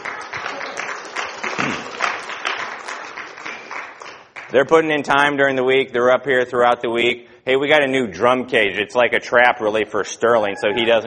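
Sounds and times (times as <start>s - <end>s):
audience applause: 0.0s - 4.5s
speech: 4.5s - 11.0s.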